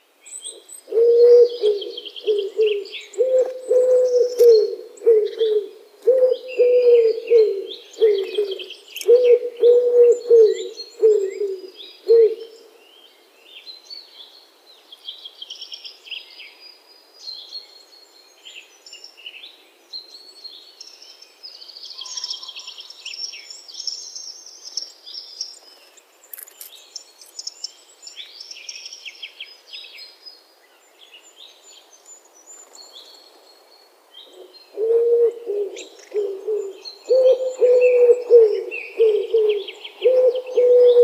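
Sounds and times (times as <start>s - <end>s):
wood pigeon calling: 0.9s - 12.6s, 34.3s - 41.0s.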